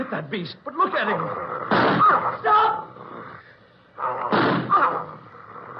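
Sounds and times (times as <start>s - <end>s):
speech: 0.0s - 3.0s, 4.0s - 5.2s
gunshot in a radio drama: 1.7s - 2.1s, 4.3s - 4.8s.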